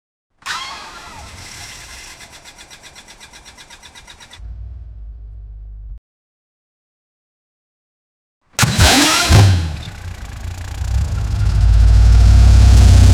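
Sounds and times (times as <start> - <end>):
engine ignition starting slowly: 0.4 - 5.5, 8.6 - 13.0.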